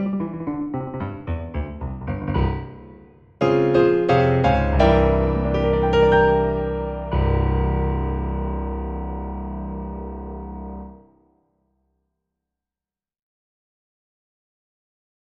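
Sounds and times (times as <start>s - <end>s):
jazz etude: 0.0s - 8.8s.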